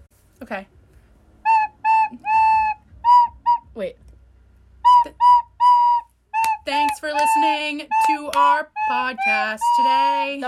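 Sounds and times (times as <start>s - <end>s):
speech: 0.4s - 0.8s, 3.8s - 4.0s, 6.7s - 10.4s
person whistling a tune: 1.5s - 3.8s, 4.8s - 10.4s.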